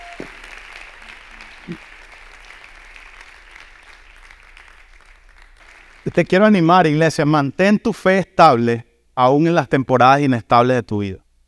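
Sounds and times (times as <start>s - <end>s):
church audience applauding: 0.0s - 6.5s
speech: 1.7s - 1.9s, 6.0s - 11.2s.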